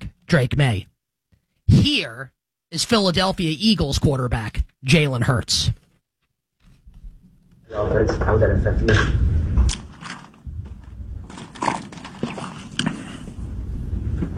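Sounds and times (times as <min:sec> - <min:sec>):
speech: 0:00.3 - 0:00.9, 0:01.7 - 0:05.8, 0:07.7 - 0:09.8
steady rumbling background: 0:07.7 - 0:11.3
person taking a long sip of water into a microphone: 0:09.7 - 0:13.6.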